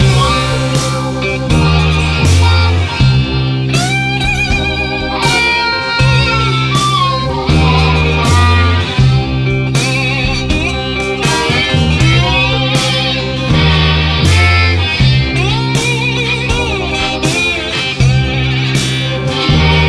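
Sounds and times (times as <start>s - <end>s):
blues music at 80 bpm: 0.0s - 19.8s.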